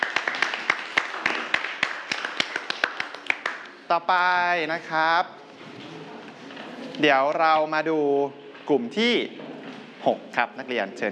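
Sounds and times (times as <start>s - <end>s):
students clapping for classmates: 0.0s - 3.9s
speech: 3.9s - 5.4s, 7.0s - 9.4s, 10.0s - 11.1s.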